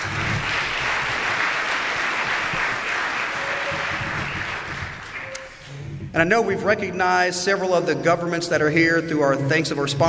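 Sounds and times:
audience applause: 0.0 - 5.7
speech: 6.2 - 10.0.

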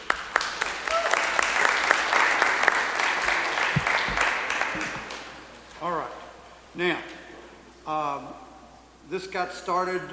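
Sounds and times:
applause: 0.0 - 5.3
speech: 6.8 - 7.1, 9.1 - 10.1.

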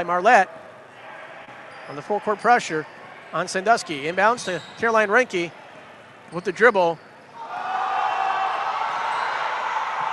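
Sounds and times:
speech: 0.0 - 0.6, 1.9 - 5.6, 6.3 - 7.0
basketball crowd cheering: 7.4 - 10.1.

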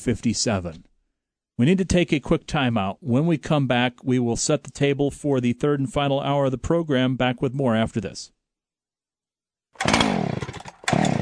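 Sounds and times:
speech: 0.0 - 0.9, 1.6 - 8.4
chainsaw engine revving: 9.8 - 11.2.

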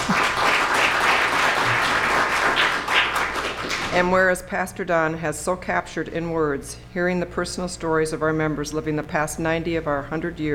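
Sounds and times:
crowd applause: 0.0 - 3.9
speech: 4.0 - 10.5.

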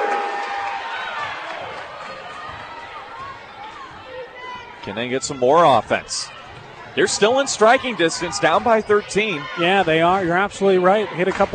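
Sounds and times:
basketball crowd rising and cheering: 0.0 - 11.5
speech: 4.8 - 6.4, 7.0 - 11.5.

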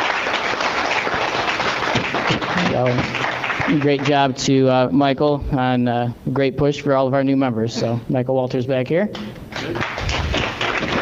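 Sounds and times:
chamber of commerce audience clapping for new member businesses: 0.0 - 4.5, 9.2 - 11.0
speech: 2.3 - 9.9.

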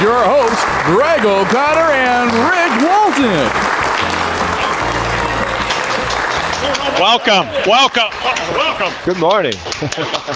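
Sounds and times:
speech: 0.0 - 3.9, 6.6 - 10.3
rowdy crowd applause at a live morning show: 0.0 - 10.3
laughter: 0.8 - 10.3.

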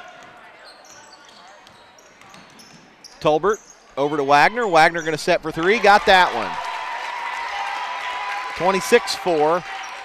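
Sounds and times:
crowd noise: 0.0 - 10.0
basketball bouncing on court during behind-the-back dribble: 0.1 - 0.5, 1.3 - 2.9
speech: 3.2 - 6.6, 8.6 - 9.8.

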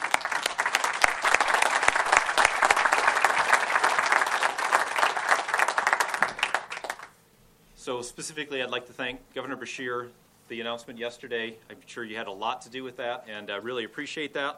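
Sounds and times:
round of applause: 0.0 - 7.2
speech: 7.9 - 14.5.

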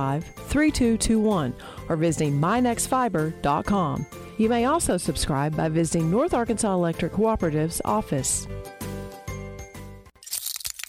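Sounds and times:
speech: 0.0 - 8.8
glass cracking and chipping: 10.2 - 10.8.

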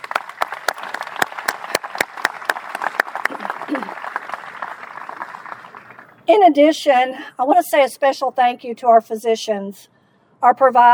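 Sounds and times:
audience round of applause: 0.0 - 6.2
speech: 3.7 - 4.1, 6.3 - 10.9.

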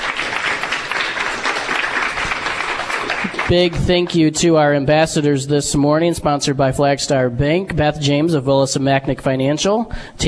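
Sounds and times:
audience applause: 0.0 - 3.9
speech: 3.5 - 10.2.

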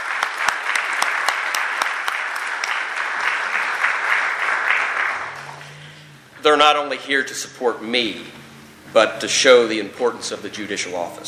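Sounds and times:
crowd applauding: 0.0 - 6.1
speech: 6.4 - 11.2.

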